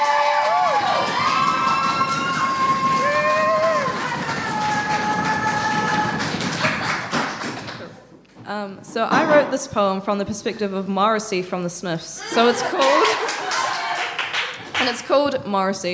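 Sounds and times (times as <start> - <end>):
crowd cheering with high whoops and whistle-like shouts: 0.0 - 7.0, 12.2 - 14.6
crowd applauding: 0.0 - 8.0, 12.3 - 15.1
speech: 9.0 - 13.3, 14.8 - 15.9.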